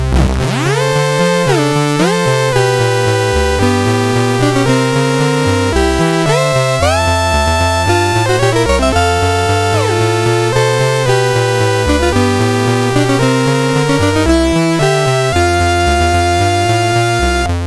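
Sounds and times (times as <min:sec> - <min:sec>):
siren: 0:00.2 - 0:17.5.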